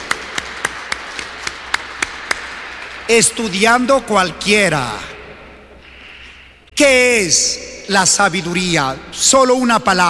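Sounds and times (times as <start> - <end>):
audience applause: 0.0 - 3.1
speech: 3.1 - 5.1, 6.8 - 10.0.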